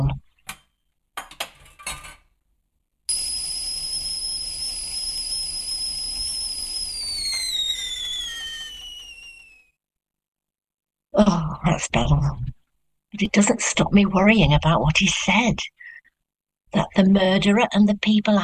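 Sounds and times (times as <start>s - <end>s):
kettle boiling and whistling: 3.1s - 9.8s
speech: 11.8s - 15.8s, 16.7s - 18.4s.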